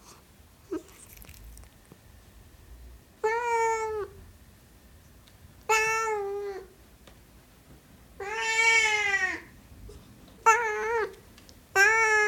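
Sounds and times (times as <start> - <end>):
Siamese cat meowing: 3.2 - 4.2, 5.7 - 6.7, 8.2 - 9.5, 10.4 - 12.2.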